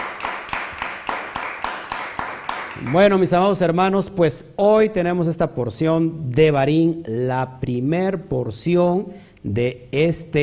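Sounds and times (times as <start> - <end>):
crowd clapping in a steady even rhythm: 0.0 - 3.4
speech: 2.8 - 10.4.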